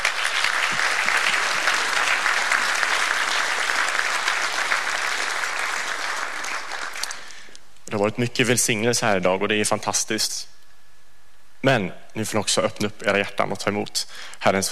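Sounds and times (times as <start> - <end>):
audience applause: 0.0 - 7.4
speech: 8.0 - 10.6, 11.6 - 14.6.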